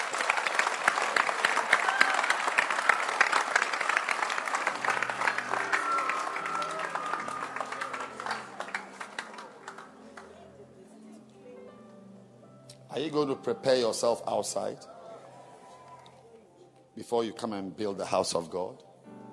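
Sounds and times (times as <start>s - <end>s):
audience applause: 0.0s - 10.4s
speech: 13.0s - 15.0s, 17.1s - 18.9s.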